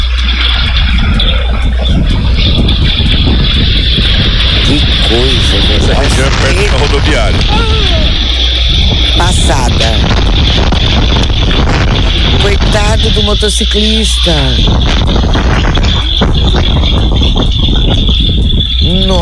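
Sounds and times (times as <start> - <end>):
strong wind blowing dust: 0.0 - 19.1
speech: 6.2 - 8.0, 9.2 - 10.7, 12.6 - 19.1.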